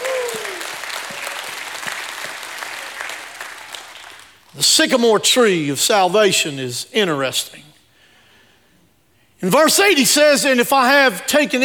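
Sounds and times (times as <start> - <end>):
audience shouting praise: 0.0 - 3.4
audience clapping hands: 0.0 - 4.5
speech: 4.6 - 7.7, 9.4 - 11.6.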